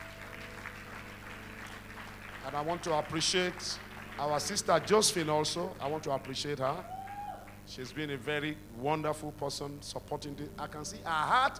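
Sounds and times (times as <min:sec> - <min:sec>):
audience clapping hands: 0:00.0 - 0:07.6
speech: 0:02.4 - 0:07.0, 0:07.7 - 0:11.5.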